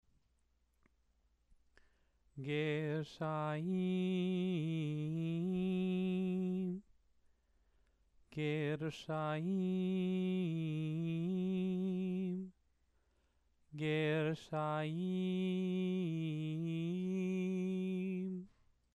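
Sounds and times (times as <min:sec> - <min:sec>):
person chanting scripture: 0:02.4 - 0:06.8, 0:08.4 - 0:12.5, 0:13.8 - 0:18.5.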